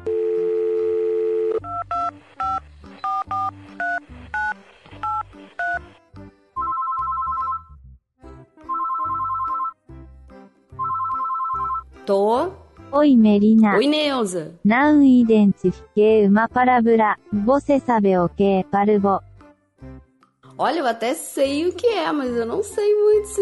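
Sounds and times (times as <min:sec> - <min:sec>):
telephone touch-tone dialing beeps: 0:00.1 - 0:05.8, 0:06.6 - 0:07.7, 0:08.7 - 0:09.8, 0:10.8 - 0:11.8
speech: 0:12.1 - 0:20.0, 0:20.6 - 0:23.4.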